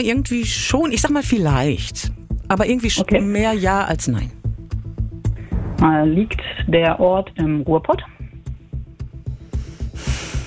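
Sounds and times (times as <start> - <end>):
speech: 0.0 - 4.4, 5.8 - 8.2
heavy breathing: 9.4 - 10.4.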